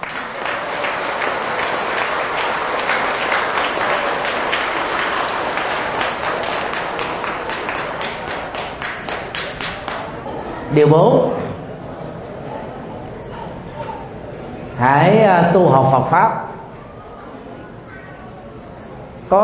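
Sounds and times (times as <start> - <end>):
audience applause: 0.0 - 10.3
speech: 10.8 - 11.4, 14.8 - 16.5, 19.3 - 19.4.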